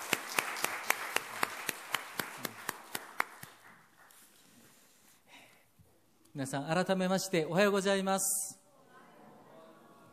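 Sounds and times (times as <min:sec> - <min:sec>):
audience clapping: 0:00.0 - 0:04.5
speech: 0:06.4 - 0:08.6.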